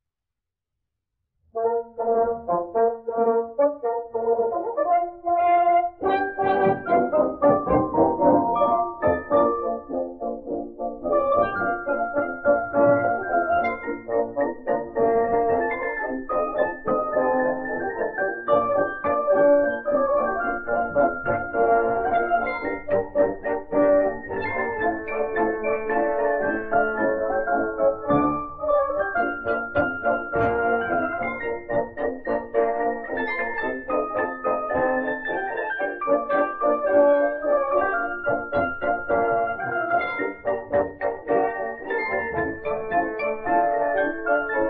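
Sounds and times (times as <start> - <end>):
denoised march music: 1.6 - 44.6.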